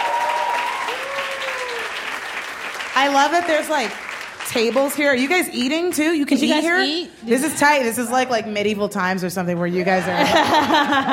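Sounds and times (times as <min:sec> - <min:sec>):
seated dining audience clapping at a live show: 0:00.0 - 0:05.9
speech: 0:03.0 - 0:11.1
laughter: 0:09.8 - 0:11.1.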